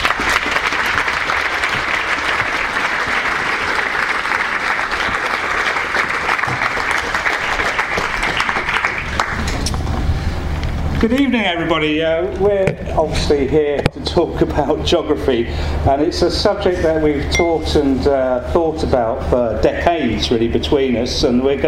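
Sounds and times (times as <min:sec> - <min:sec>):
audience applause welcoming two authors at an evening book talk: 0:00.0 - 0:09.8
speech: 0:11.0 - 0:21.6.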